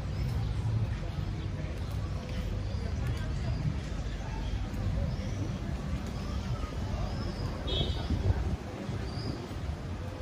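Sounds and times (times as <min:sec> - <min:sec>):
low rumble of traffic in Tel Aviv streets: 0:00.0 - 0:10.2
scattered voices and murmured talk: 0:00.0 - 0:10.2.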